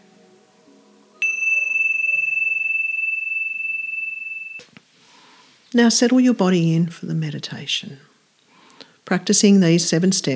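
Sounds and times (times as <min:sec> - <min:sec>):
meditation bell ringing: 0:01.2 - 0:04.8
speech: 0:05.7 - 0:08.1, 0:09.1 - 0:10.3.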